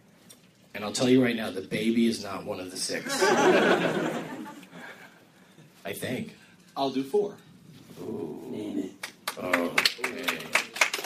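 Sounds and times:
speech: 0.8s - 4.4s, 5.9s - 7.4s, 8.0s - 8.6s, 9.4s - 10.3s
laughter: 3.0s - 4.9s
smattering of applause from small audience: 9.0s - 11.0s.

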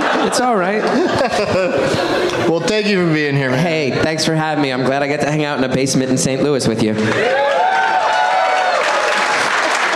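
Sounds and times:
laughter: 0.0s - 2.6s, 8.9s - 9.9s
speech: 0.2s - 7.8s
audience cheering and applause: 7.0s - 9.9s.

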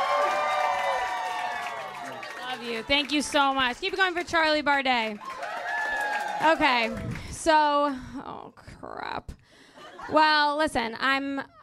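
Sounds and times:
audience cheering: 0.0s - 4.0s, 5.1s - 7.2s
audience clapping: 0.0s - 7.4s
speech: 2.8s - 5.3s, 6.4s - 8.6s, 10.1s - 11.6s.

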